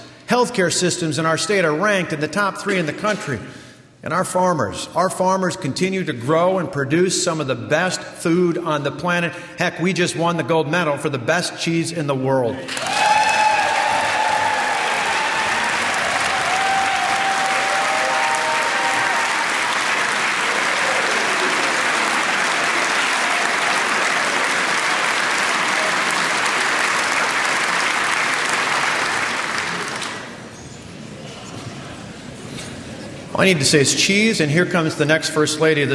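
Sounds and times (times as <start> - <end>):
speech: 0.4 - 13.0, 33.4 - 35.9
audience applause: 12.7 - 30.4.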